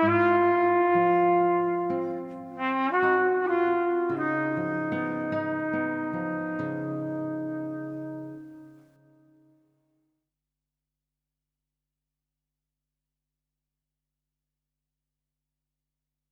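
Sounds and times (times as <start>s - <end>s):
trumpet: 0.0s - 9.6s
guitar: 0.0s - 9.7s.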